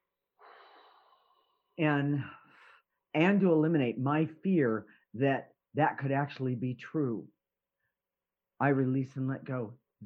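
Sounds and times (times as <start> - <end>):
voiced exhale: 0.4 - 1.7
person inhaling during a guided breathing exercise: 0.4 - 1.8
speech: 1.8 - 2.4, 3.1 - 7.4, 8.6 - 10.0.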